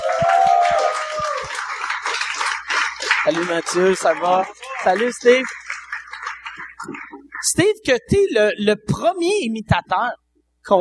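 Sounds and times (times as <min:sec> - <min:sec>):
audience applause: 0:00.0 - 0:07.5
speech: 0:03.3 - 0:05.6, 0:06.8 - 0:10.8.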